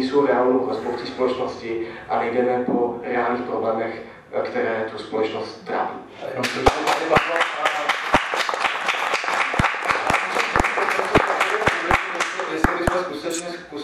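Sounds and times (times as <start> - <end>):
speech: 0.0 - 7.6
audience applause: 6.6 - 12.9.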